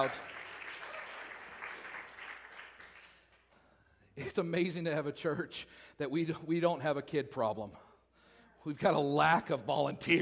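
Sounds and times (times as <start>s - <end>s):
speech: 0.0s - 0.3s, 4.2s - 7.9s, 8.6s - 10.2s
crowd applauding: 0.0s - 3.5s.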